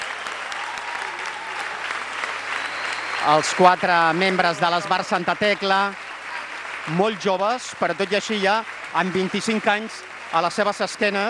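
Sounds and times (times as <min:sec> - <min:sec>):
audience applause: 0:00.0 - 0:11.2
speech: 0:03.2 - 0:06.0, 0:06.8 - 0:11.2.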